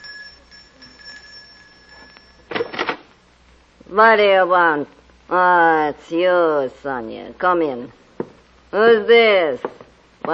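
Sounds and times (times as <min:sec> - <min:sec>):
doorbell ringing: 0:00.0 - 0:02.6
speech: 0:03.9 - 0:08.0, 0:08.7 - 0:10.3.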